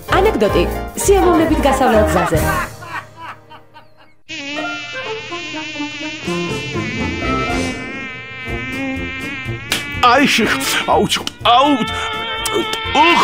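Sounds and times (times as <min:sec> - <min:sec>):
speech: 0:00.3 - 0:02.7, 0:10.1 - 0:13.2
laughter: 0:01.5 - 0:04.2
mosquitoes buzzing: 0:04.3 - 0:13.2.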